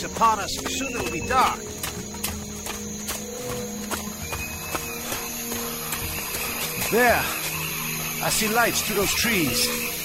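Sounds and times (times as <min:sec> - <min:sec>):
speech: 0:00.0 - 0:01.8, 0:06.9 - 0:07.4, 0:08.2 - 0:10.0
dense chorus of frogs croaking loudly: 0:00.0 - 0:10.0.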